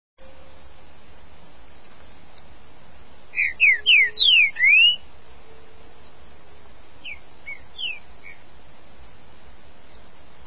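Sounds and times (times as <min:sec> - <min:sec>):
green-winged saltator whistling song: 0:03.3 - 0:05.7, 0:07.0 - 0:08.5.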